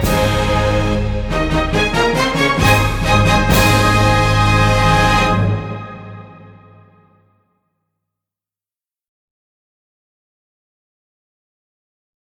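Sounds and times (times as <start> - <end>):
instrumental national anthem in A-flat: 0.0 - 7.2.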